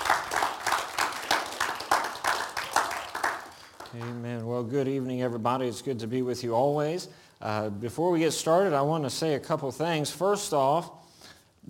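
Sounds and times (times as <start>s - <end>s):
audience applause: 0.0s - 4.2s
speech: 4.0s - 11.0s.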